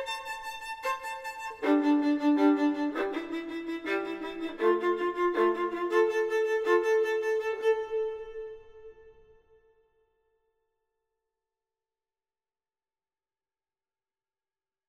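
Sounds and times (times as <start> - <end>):
solo violin: 0.0 - 9.8.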